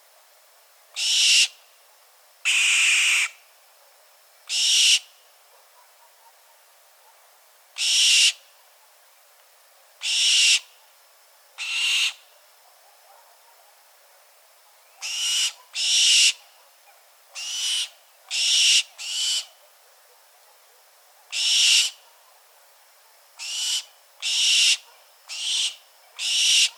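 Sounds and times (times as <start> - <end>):
barn owl call: 1.0 - 1.6, 2.5 - 3.4, 4.5 - 5.1, 7.8 - 8.4, 10.0 - 10.7, 11.6 - 12.3, 15.0 - 16.5, 17.4 - 19.6, 21.3 - 22.2, 23.4 - 26.7.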